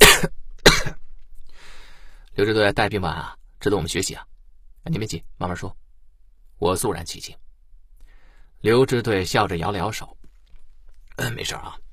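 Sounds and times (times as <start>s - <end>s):
man coughing violently: 0.0s - 1.0s
speech: 2.4s - 5.8s, 6.6s - 7.4s, 8.6s - 10.2s, 11.2s - 11.8s.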